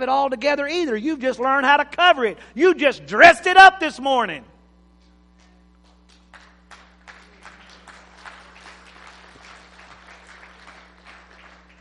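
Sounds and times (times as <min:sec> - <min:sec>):
speech: 0:00.0 - 0:04.5
audience clapping: 0:05.0 - 0:11.7.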